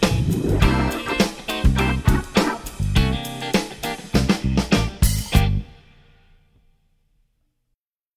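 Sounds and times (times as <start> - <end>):
drums: 0.0 - 6.3.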